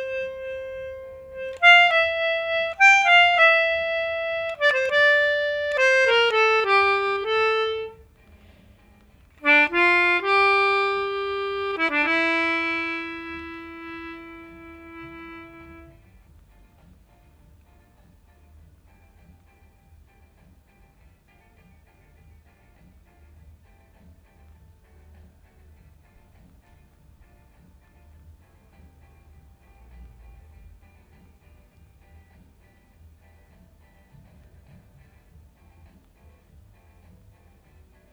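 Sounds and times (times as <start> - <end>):
melodica: 0.0 - 8.1, 9.4 - 16.0.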